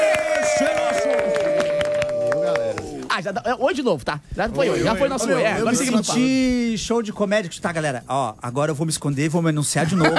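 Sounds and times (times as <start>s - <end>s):
applause: 0.0s - 3.1s
speech: 3.2s - 10.1s.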